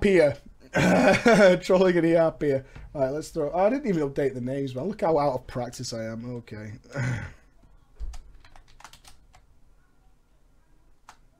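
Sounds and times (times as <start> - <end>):
speech: 0.0 - 7.4
faint typing on a computer keyboard: 8.0 - 9.5.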